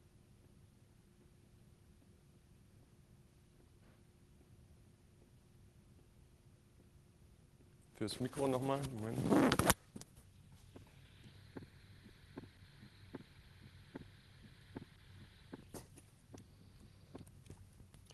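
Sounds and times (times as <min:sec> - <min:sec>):
faint low hum: 0:00.0 - 0:18.1
speech: 0:08.0 - 0:09.8
normal heartbeat with two heart sounds: 0:10.7 - 0:18.0.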